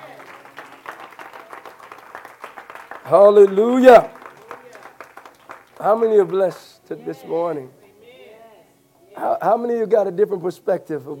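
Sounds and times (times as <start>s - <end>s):
audience hand clapping: 0.0s - 6.7s
speech: 3.1s - 4.2s, 5.8s - 7.8s, 9.2s - 11.1s.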